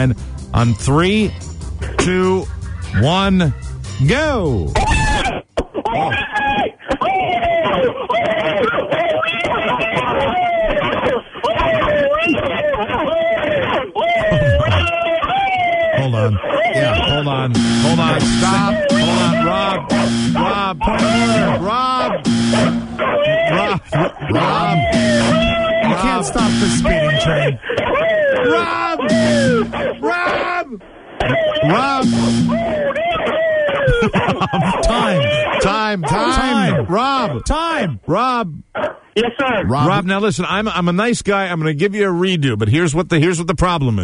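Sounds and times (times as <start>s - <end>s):
speech: 0.0s - 5.0s, 5.9s - 9.0s, 16.2s - 32.8s, 34.0s - 44.0s
several people talking and shouting excitedly: 1.8s - 37.4s
person squealing and whooping like a dog: 4.8s - 17.2s, 23.0s - 26.0s, 27.0s - 30.5s, 31.2s - 31.9s, 32.5s - 34.2s
laughter: 5.8s - 17.1s, 17.9s - 30.4s, 31.2s - 35.6s.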